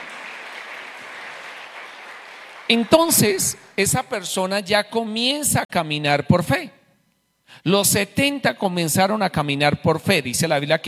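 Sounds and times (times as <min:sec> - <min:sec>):
audience applause: 0:00.0 - 0:03.4
speech: 0:02.7 - 0:06.8, 0:07.5 - 0:10.8.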